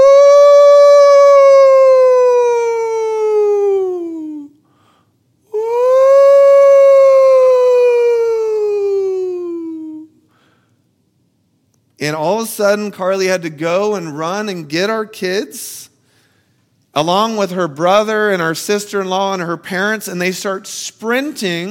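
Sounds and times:
person imitating a tornado siren: 0.0s - 4.6s, 5.5s - 10.1s
speech: 12.1s - 15.9s, 17.0s - 21.6s.

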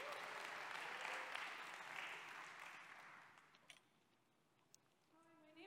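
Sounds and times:
church congregation applause welcoming two students: 0.0s - 3.7s.

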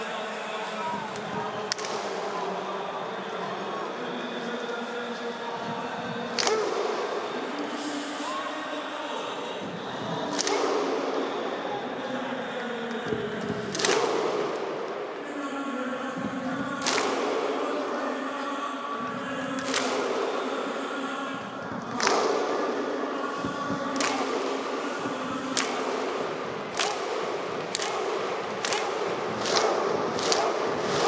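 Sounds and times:
crowd Viking war chant: 0.0s - 31.0s
crowd clapping: 1.7s - 2.2s, 13.7s - 14.9s, 16.8s - 17.6s, 19.6s - 20.4s, 21.8s - 22.8s, 23.9s - 31.0s.

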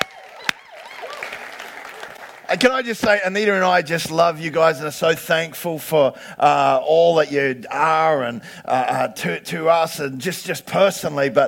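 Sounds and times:
audience applause: 0.0s - 2.9s
speech: 2.5s - 11.4s.

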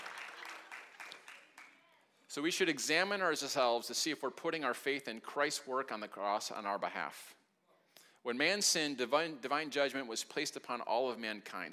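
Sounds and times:
audience clapping: 0.0s - 1.9s
speech: 2.3s - 7.4s, 8.2s - 11.7s.

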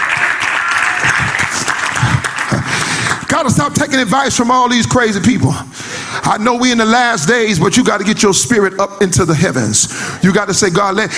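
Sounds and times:
people clapping hands: 0.0s - 3.7s
speech: 3.4s - 11.1s.

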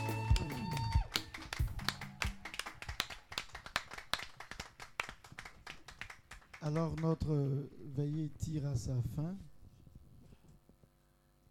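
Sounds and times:
congregation clapping to acclaim the Virgin Mary at a church night vigil: 0.0s - 8.6s
speech: 6.6s - 9.5s.

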